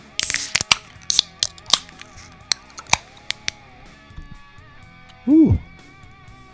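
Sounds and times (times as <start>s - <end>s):
beer cans being cracked open: 0.0s - 6.5s.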